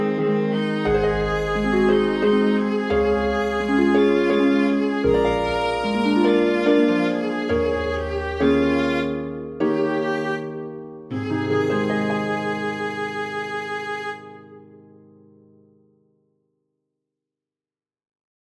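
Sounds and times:
waltz in a major key for viola and harp: 0:00.0 - 0:14.7.

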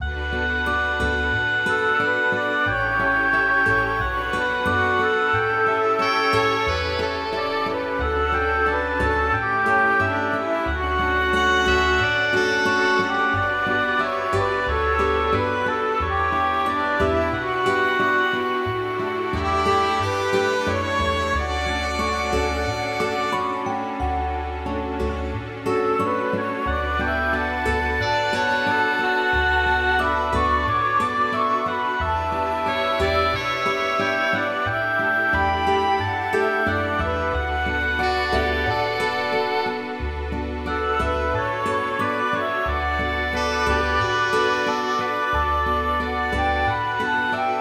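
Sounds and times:
short smooth orchestral piece: 0:00.0 - 0:47.6.

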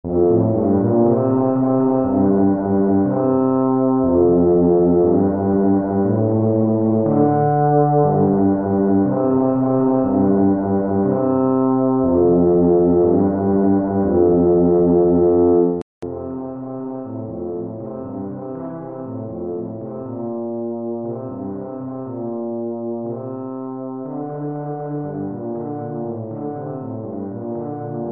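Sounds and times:
tuba: 0:00.0 - 0:28.1.

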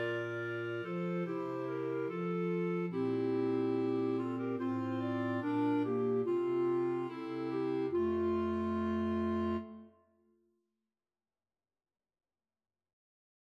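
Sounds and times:
string quartet playing: 0:00.0 - 0:09.8.

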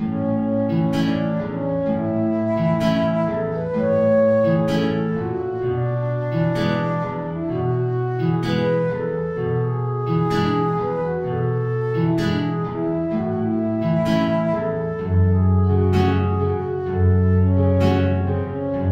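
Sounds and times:
tango music: 0:00.1 - 0:18.9.

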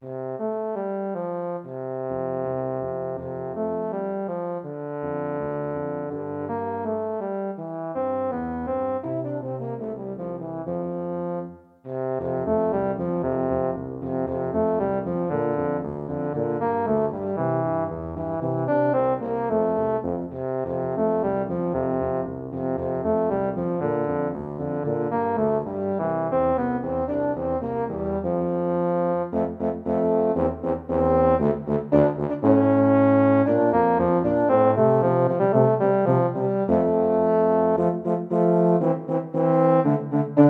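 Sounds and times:
Christmas song: 0:00.5 - 0:40.4.

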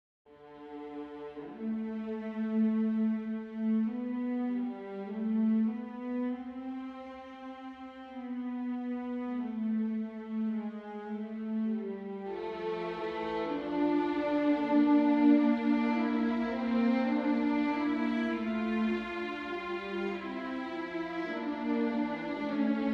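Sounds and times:
string quartet playing a fugue: 0:00.4 - 0:22.9.

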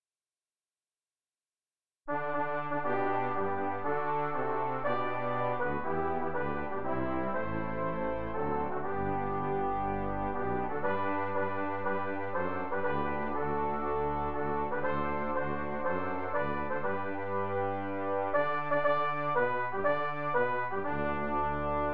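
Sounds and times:
national anthem on piano: 0:02.1 - 0:21.9.

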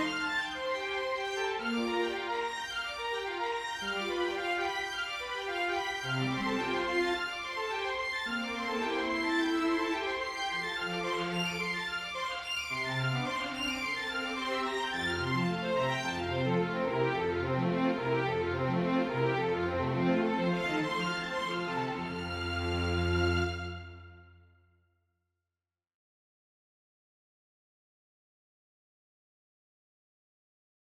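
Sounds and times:
prelude in a major key for string quartet: 0:00.0 - 0:24.4.

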